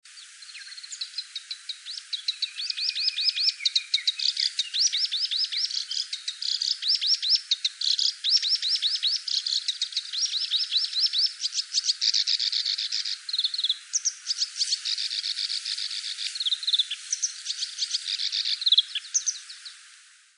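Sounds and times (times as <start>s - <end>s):
black-browed reed warbler song: 0.1s - 20.3s.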